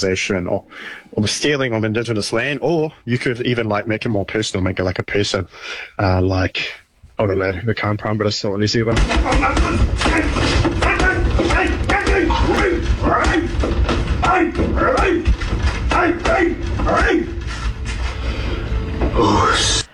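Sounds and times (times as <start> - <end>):
speech: 0.0 - 10.4, 19.1 - 19.8
fists punching a punching bag: 9.0 - 16.6
grunts: 9.0 - 17.8.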